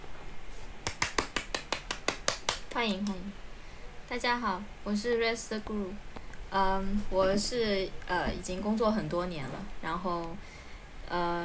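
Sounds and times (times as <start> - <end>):
applause: 0.8 - 2.8
speech: 2.8 - 3.4, 4.1 - 11.4.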